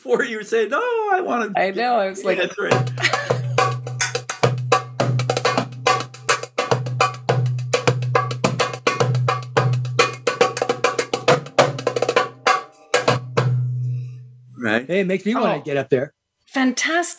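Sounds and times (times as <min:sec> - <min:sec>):
speech: 0:00.0 - 0:03.4, 0:14.9 - 0:17.1
laughter: 0:02.3 - 0:03.8
solid copper North African hand drum played fast: 0:02.7 - 0:13.9.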